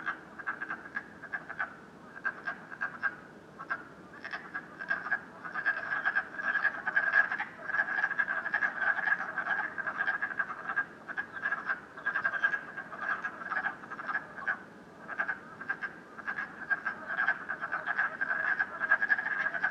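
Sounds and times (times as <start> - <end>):
frogs croaking in a dense chorus at night in Canada: 0.0 - 19.6.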